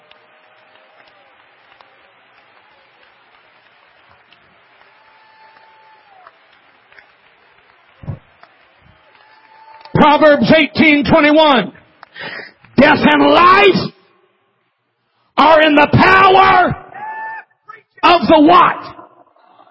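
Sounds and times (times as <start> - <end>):
audience clapping hands: 0.0 - 12.8
speech: 10.0 - 11.8, 12.8 - 13.9, 15.4 - 16.8, 18.0 - 18.9.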